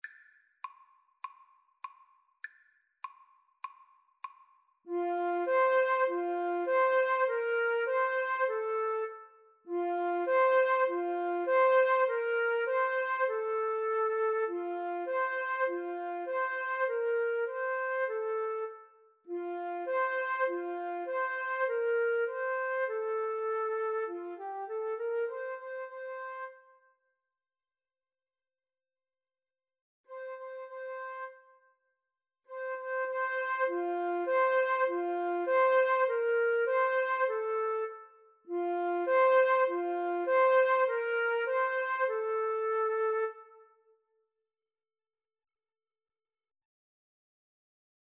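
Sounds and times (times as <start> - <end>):
flute duet: 4.9 - 26.7, 30.2 - 31.5, 32.6 - 43.8.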